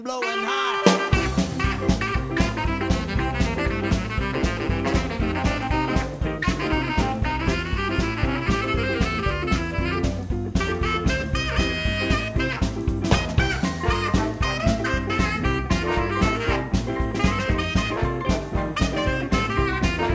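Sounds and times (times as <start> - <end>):
saxophone honking: 0.2 - 20.1.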